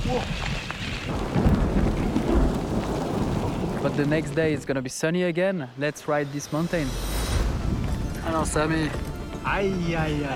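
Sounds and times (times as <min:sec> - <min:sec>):
low rumbling thunder: 0:00.0 - 0:04.8
steady rain hissing: 0:00.0 - 0:10.3
speech: 0:03.8 - 0:07.2, 0:08.3 - 0:10.3.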